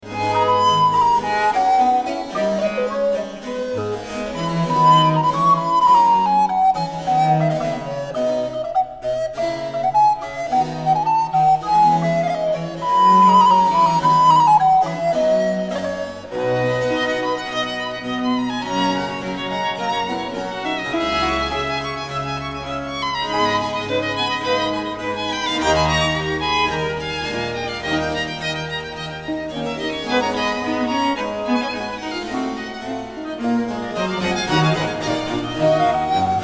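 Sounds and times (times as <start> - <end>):
concerto allegro: 0.0 - 36.4.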